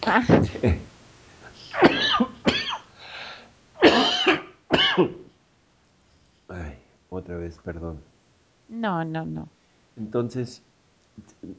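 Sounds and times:
speech: 0.1s - 0.9s, 5.0s - 5.2s, 7.1s - 8.1s, 8.7s - 11.5s
person clearing throat: 1.7s - 2.8s, 3.8s - 5.3s
person coughing: 1.7s - 2.9s, 3.8s - 5.3s.

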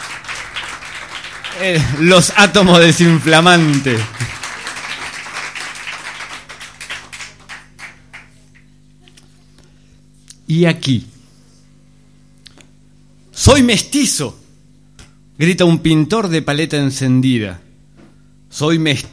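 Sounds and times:
audience applause: 0.0s - 8.6s
speech: 1.6s - 4.4s, 10.5s - 11.1s, 13.5s - 14.4s, 15.4s - 17.6s, 18.5s - 19.1s.

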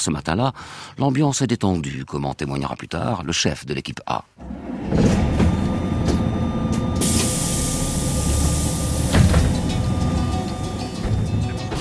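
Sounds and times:
speech: 0.0s - 5.2s
bus driving on the road to San José: 4.4s - 11.7s.

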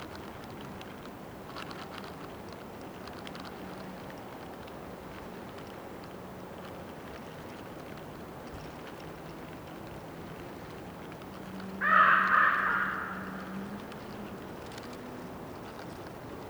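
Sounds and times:
bird croaking during a windy storm: 11.8s - 14.4s.

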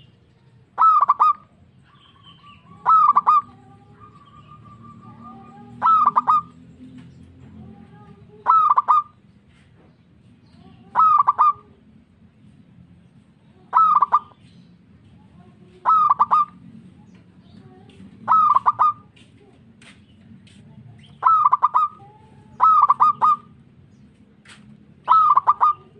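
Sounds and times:
local-type zebra dove cooing: 0.8s - 6.6s, 7.9s - 9.2s, 10.8s - 11.7s, 13.7s - 14.4s, 15.8s - 16.6s, 18.2s - 19.1s, 21.2s - 23.6s, 25.0s - 25.9s.

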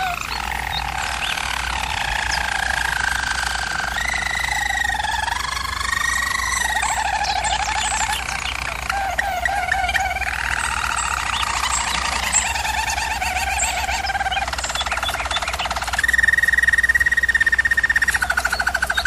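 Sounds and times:
German Roller canary singing: 0.0s - 19.0s
steady low hum: 0.0s - 19.0s.

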